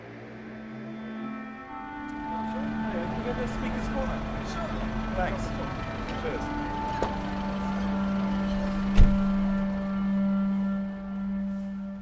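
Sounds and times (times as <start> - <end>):
traffic hum at Speaker's Corner in Hyde Park near Marble Arch: 0.0 - 11.9
speech: 3.3 - 7.2
sharp thump: 8.9 - 9.3.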